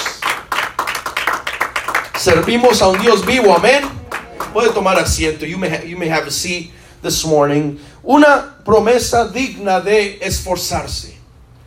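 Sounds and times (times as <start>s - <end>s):
audience clapping hands: 0.0s - 5.8s
speech: 2.2s - 11.2s.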